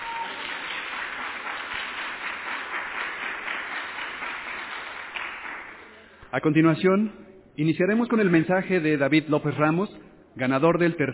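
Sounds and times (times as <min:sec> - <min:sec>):
audience applause: 0:00.0 - 0:06.0
speech: 0:06.3 - 0:11.1.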